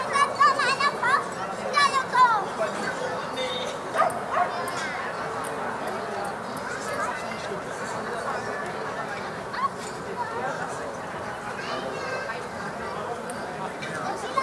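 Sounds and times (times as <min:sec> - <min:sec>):
murmur of overlapping voices on a summer evening in Berlin: 0:00.0 - 0:14.4
dog barking: 0:04.0 - 0:04.6.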